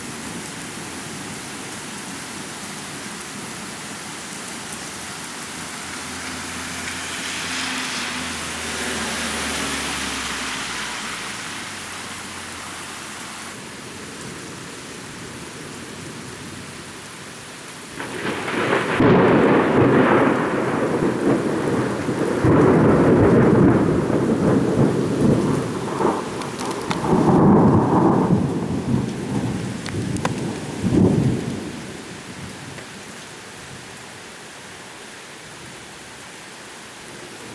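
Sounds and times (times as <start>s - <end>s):
thunderstorm: 18.0s - 32.8s.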